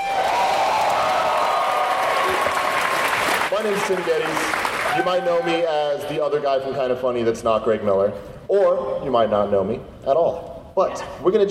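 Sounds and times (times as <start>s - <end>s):
crowd cheering and applauding at a PAX West 2016 South Park panel: 0.0s - 6.0s
speech: 3.6s - 11.4s.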